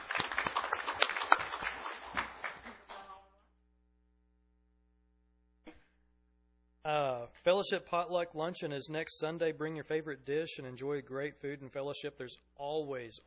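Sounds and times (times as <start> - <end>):
audience applause: 0.0 - 3.2
speech: 6.9 - 13.2.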